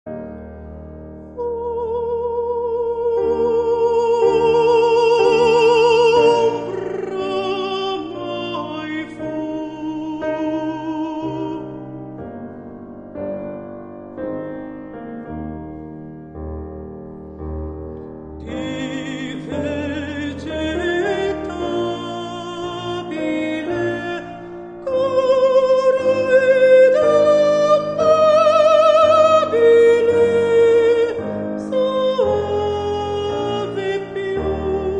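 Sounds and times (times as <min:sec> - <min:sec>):
countertenor singing: 0:01.4 - 0:11.9, 0:18.4 - 0:34.9.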